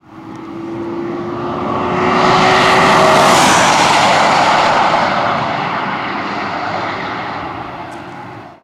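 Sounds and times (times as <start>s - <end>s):
whoosh: 1.7s - 7.4s.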